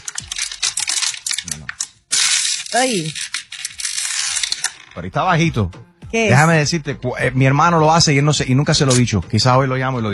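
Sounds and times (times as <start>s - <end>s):
plastic water bottle being crushed: 0.0s - 4.8s
speech: 2.7s - 3.3s, 5.0s - 10.1s.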